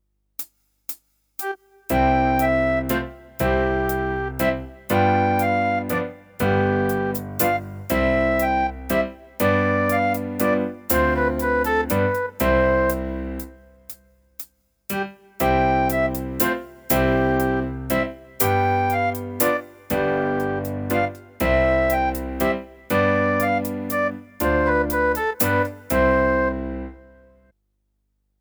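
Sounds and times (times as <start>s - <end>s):
fife playing a minuet: 1.4s - 13.8s, 15.4s - 27.4s.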